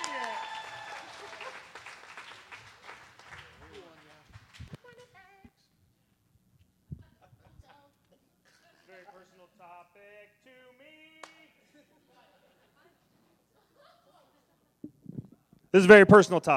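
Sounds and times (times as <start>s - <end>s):
audience applause for a comedian at a comedy show: 0.0s - 4.7s
laughter: 1.0s - 1.9s, 11.4s - 14.8s
speech: 15.7s - 16.5s.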